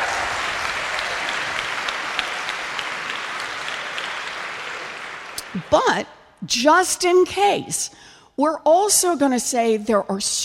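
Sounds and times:
crowd applauding: 0.0s - 6.0s
speech: 5.5s - 10.4s.

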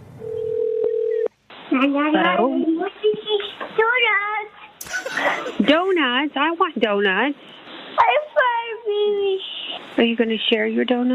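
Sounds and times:
telephone dialing tone: 0.2s - 1.3s
speech: 1.8s - 8.2s, 8.9s - 11.1s
laughter: 4.8s - 6.0s.

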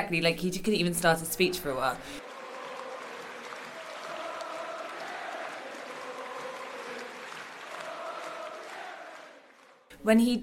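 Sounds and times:
speech: 0.0s - 2.3s, 10.0s - 10.4s
large rally crowd clapping: 2.1s - 10.0s
rally crowd shouts and whoops: 2.2s - 9.3s.

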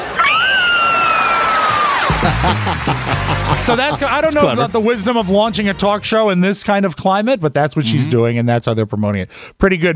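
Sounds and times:
group of people screaming excitedly: 0.0s - 4.8s
laughter: 1.7s - 6.1s
speech: 3.6s - 9.9s.

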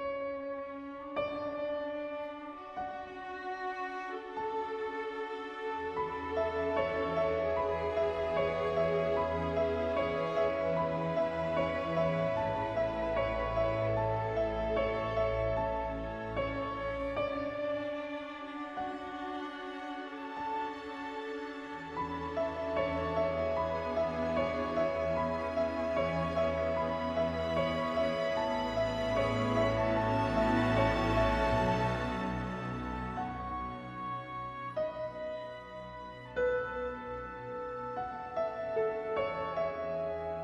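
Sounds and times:
strings playing: 0.1s - 40.3s.

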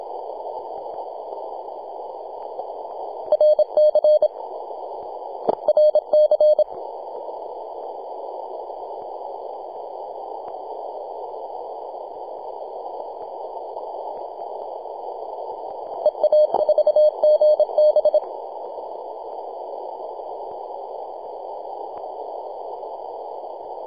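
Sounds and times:
morse code tones on 28.008 MHz: 3.3s - 4.3s, 5.7s - 6.6s, 16.0s - 18.2s.

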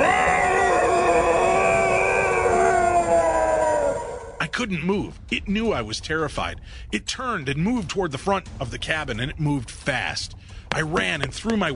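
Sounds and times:
wailing guttural howl of a creature: 0.0s - 4.5s
speech: 4.6s - 11.7s.

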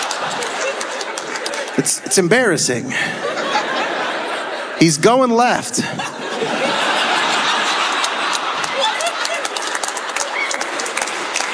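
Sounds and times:
scattered laughter: 0.0s - 2.1s, 2.9s - 11.5s
audience applause: 0.0s - 2.4s, 6.4s - 11.5s
speech: 1.8s - 3.4s, 4.8s - 6.7s
whoops: 10.2s - 10.9s.

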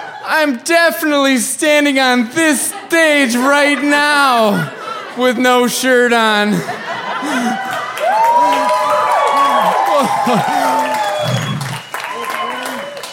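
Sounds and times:
laughter: 0.0s - 12.9s
speech: 0.3s - 7.6s, 10.2s - 10.8s
crowd applauding: 7.2s - 13.1s.

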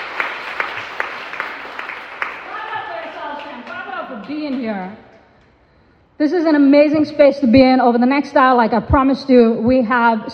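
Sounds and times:
audience clapping at an AAPI poetry evening: 0.0s - 5.0s
speech: 4.1s - 5.1s, 6.2s - 10.3s.

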